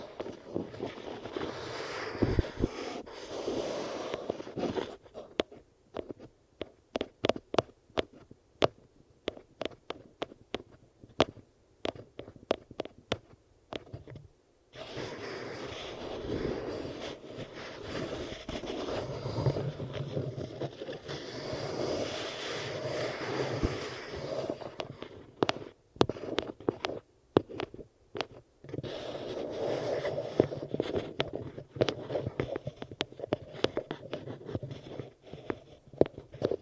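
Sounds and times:
eardrum massage rubbing and scraping: 0.0 - 6.3, 14.8 - 36.5
quick irregular crackles and sharp taps: 4.1 - 14.3, 24.5 - 29.0, 30.3 - 36.5.

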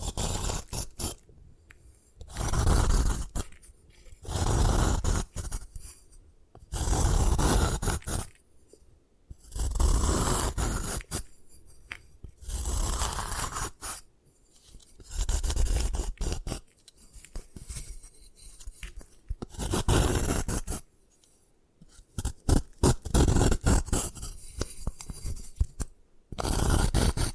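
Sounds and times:
gym chalk crushed and ground: 0.0 - 6.0, 6.7 - 8.4, 9.4 - 20.9, 21.9 - 27.3.

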